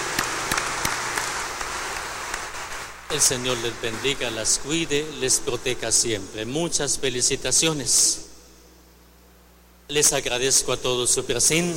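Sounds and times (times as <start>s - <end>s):
audience applause: 0.0s - 4.8s
speech: 3.1s - 8.3s, 9.9s - 11.7s.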